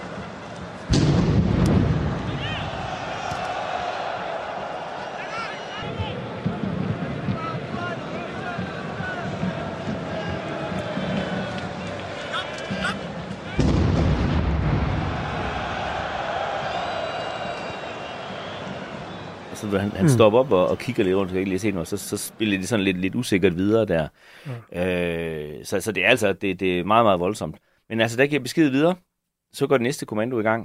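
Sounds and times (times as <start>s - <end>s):
stadium crowd roar: 0.0s - 23.0s
loud explosions at a football stadium: 0.9s - 3.2s, 13.5s - 16.0s
speech: 19.6s - 30.6s.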